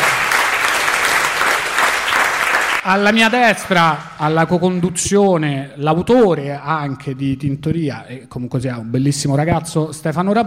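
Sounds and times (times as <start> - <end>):
audience applause at a live show in Recanati: 0.0 - 4.1
speech: 2.8 - 10.4.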